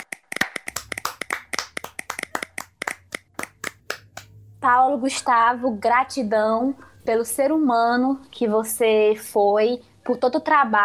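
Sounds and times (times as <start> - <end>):
hand clapping: 0.0 - 4.3
speech: 4.6 - 10.8.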